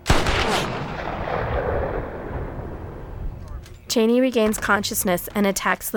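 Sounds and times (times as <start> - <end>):
long-range rifle gunshot with rumbling echo: 0.0 - 3.7
speech: 3.9 - 5.9.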